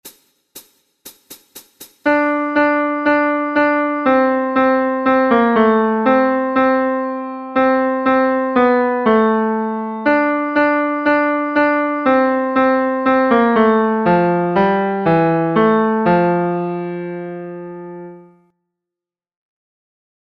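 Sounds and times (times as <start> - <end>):
tenor instrumental: 1.8 - 18.4.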